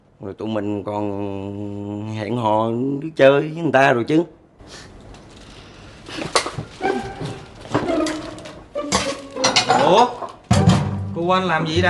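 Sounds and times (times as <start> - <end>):
speech: 0.2 - 4.9, 9.9 - 10.2, 11.2 - 11.8
bowls and plates clinking during dish washing: 6.4 - 10.9.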